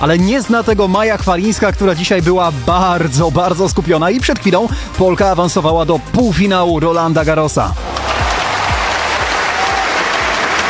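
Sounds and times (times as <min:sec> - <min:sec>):
speech: 0:00.0 - 0:08.2
audience clapping in unison with a steady rhythmic thump: 0:07.8 - 0:10.6
large crowd applauding: 0:07.8 - 0:10.6.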